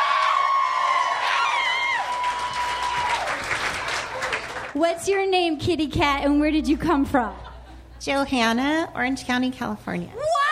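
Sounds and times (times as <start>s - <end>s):
live audience applause and cheering: 0.0s - 4.8s
speech: 4.8s - 7.4s, 8.0s - 10.4s.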